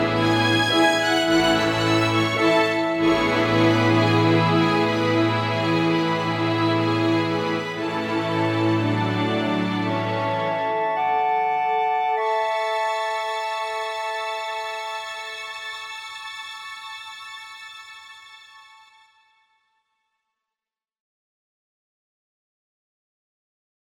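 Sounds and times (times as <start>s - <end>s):
orchestra: 0.0s - 19.0s.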